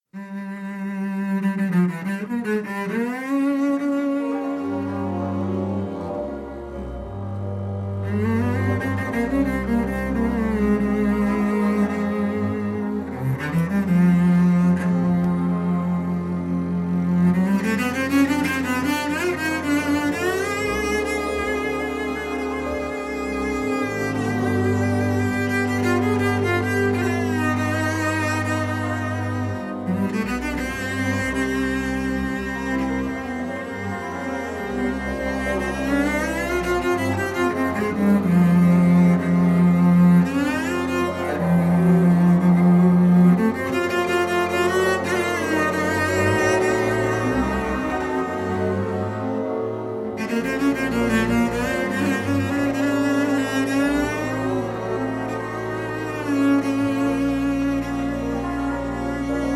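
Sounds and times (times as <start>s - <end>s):
cello solo: 0.0s - 59.5s.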